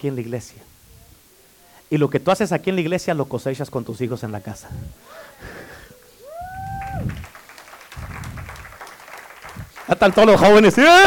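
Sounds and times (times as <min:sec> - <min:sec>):
speech: 0:00.0 - 0:00.8, 0:01.9 - 0:05.6, 0:09.9 - 0:11.0
young people applauding in church: 0:05.1 - 0:11.0.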